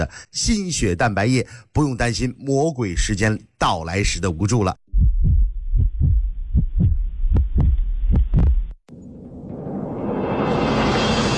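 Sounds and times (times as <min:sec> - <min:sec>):
speech: 0:00.0 - 0:05.1
deep booming heartbeat thumps: 0:03.0 - 0:03.2, 0:04.9 - 0:08.8
rising brightening whoosh: 0:09.2 - 0:11.3.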